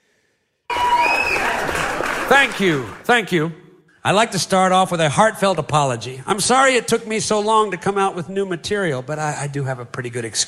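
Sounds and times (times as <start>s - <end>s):
AI-generated round of applause: 0.7s - 3.4s
speech: 2.3s - 10.4s.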